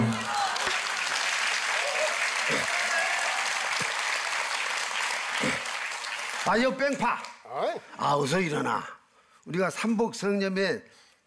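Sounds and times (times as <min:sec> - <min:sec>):
audience applause: 0:00.0 - 0:07.4
speech: 0:06.5 - 0:11.2.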